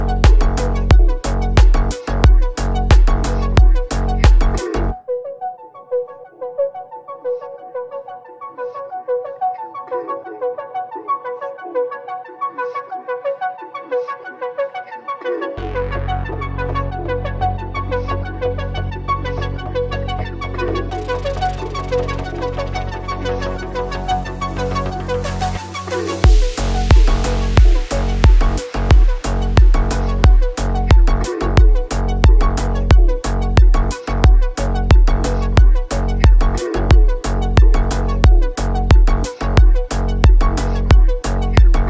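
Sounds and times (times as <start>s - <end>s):
boosted bass: 0.0s - 5.0s, 15.6s - 41.8s.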